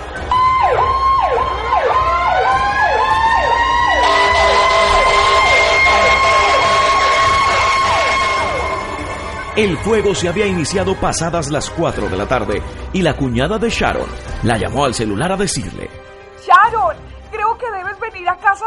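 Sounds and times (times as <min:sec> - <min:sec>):
fire engine siren: 0:00.0 - 0:10.6
second sustained siren wail: 0:00.2 - 0:09.7
speech: 0:09.6 - 0:17.0, 0:17.6 - 0:18.6.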